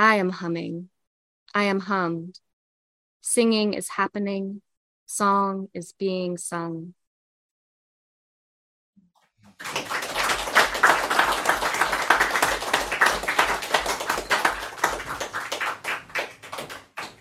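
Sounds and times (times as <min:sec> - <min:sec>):
speech: 0:00.0 - 0:00.9, 0:01.5 - 0:02.4, 0:03.2 - 0:07.0, 0:09.6 - 0:09.8
audience clapping after a poem: 0:09.4 - 0:17.1.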